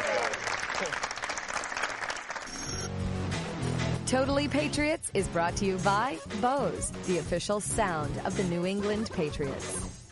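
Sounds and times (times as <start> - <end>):
audience applause: 0.0 - 2.8
speech: 4.1 - 9.9.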